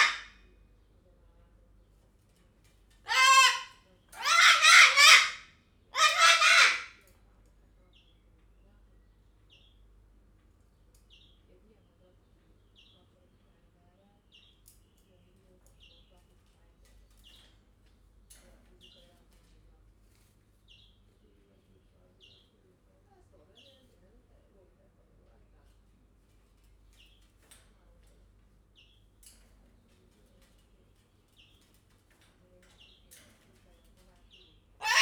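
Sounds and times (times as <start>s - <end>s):
white-crested cockatoo calling at Jaszberenyi zoo: 0.0s - 0.4s, 3.1s - 7.0s, 34.8s - 35.0s.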